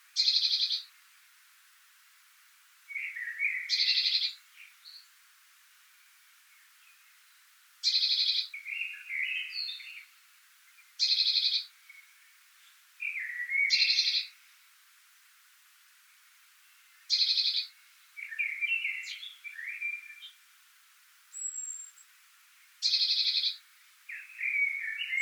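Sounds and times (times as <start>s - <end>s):
Eurasian blue tit soft chattering twitters: 0.2s - 0.9s, 2.9s - 5.0s, 7.8s - 10.1s, 11.0s - 12.1s, 13.0s - 14.4s, 17.1s - 20.4s, 21.3s - 22.1s, 22.8s - 25.2s.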